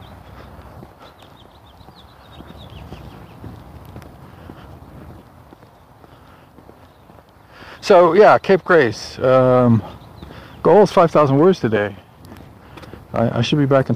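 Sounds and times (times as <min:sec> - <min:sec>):
footsteps of a person walking outdoors: 0:00.0 - 0:07.4, 0:11.8 - 0:13.1
constant noise: 0:00.0 - 0:13.9
speech: 0:07.8 - 0:10.0, 0:10.6 - 0:12.0, 0:13.2 - 0:13.9.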